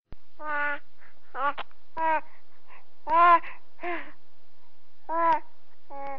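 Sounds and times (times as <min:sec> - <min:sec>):
baby cooing: 0:00.4 - 0:00.8, 0:01.4 - 0:02.3, 0:03.1 - 0:03.4, 0:05.1 - 0:06.1.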